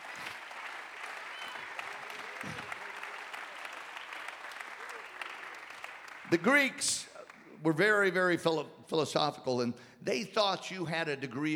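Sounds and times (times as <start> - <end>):
audience clapping hands: 0.0 - 8.2
speech: 2.4 - 2.8, 6.3 - 11.5.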